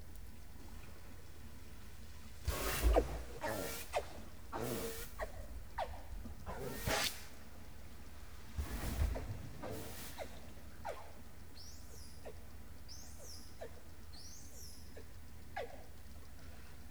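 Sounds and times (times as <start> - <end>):
dolphin whistles: 2.5 - 7.4, 8.7 - 16.0.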